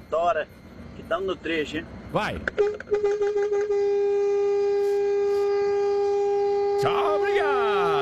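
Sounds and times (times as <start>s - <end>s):
speech: 0.2s - 4.6s, 6.8s - 7.9s
truck horn blast: 2.5s - 7.9s.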